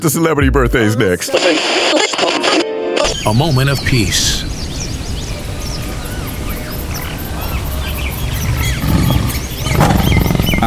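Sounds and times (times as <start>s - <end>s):
speech: 0.0s - 2.4s, 3.2s - 4.5s
birds chirping: 3.0s - 10.6s
big cat growling: 6.5s - 10.6s
big cats roaring on safari: 8.3s - 10.6s.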